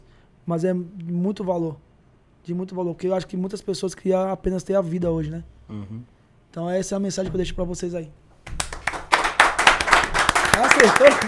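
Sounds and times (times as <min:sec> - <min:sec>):
speech: 0:00.5 - 0:08.6, 0:10.6 - 0:11.2
audience clapping: 0:08.4 - 0:11.2.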